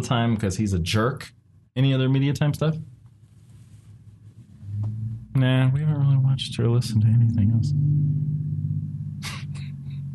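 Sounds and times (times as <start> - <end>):
speech: 0.0 - 2.9, 5.4 - 8.3
car passing outside: 4.6 - 10.1.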